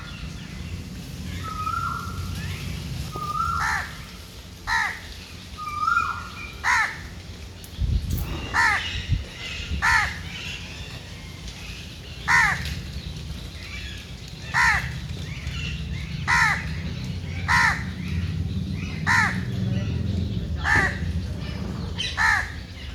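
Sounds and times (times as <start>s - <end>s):
bird giving loud harsh caws: 1.4s - 5.1s, 5.7s - 7.2s, 8.3s - 10.7s, 12.2s - 12.9s, 14.4s - 22.8s.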